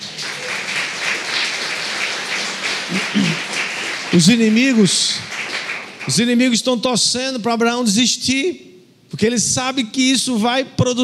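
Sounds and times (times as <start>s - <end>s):
audience applause: 0.0s - 6.4s
speech: 4.1s - 5.4s, 6.1s - 11.0s.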